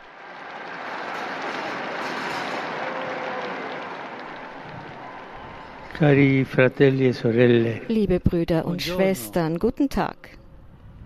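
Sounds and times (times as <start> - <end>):
crowd applause in St. Peter's Square: 0.0 - 7.8
speech: 6.0 - 10.4.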